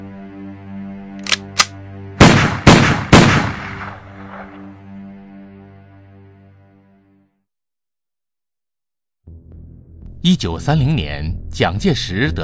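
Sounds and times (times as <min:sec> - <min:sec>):
gunshots at an execution: 0:01.2 - 0:04.6
speech: 0:10.2 - 0:12.4.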